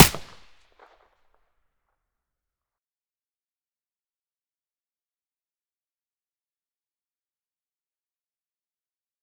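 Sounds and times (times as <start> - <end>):
APS pistol silenced gunshots: 0.0 - 0.5.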